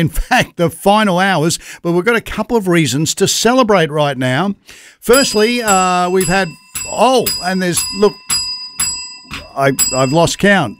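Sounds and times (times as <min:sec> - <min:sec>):
speech: 0:00.0 - 0:08.2, 0:09.6 - 0:10.7
bell rung for each $1,000 donation during a Visionathon charity appeal: 0:05.1 - 0:10.7.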